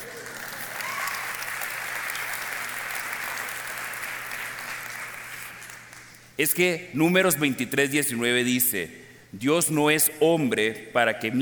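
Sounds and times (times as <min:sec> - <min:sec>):
audience applause: 0:00.0 - 0:06.0
speech: 0:06.4 - 0:11.4.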